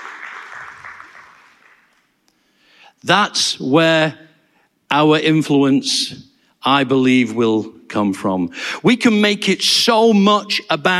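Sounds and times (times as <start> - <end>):
audience clapping: 0.0 - 2.2
speech: 3.0 - 4.2, 4.9 - 10.9.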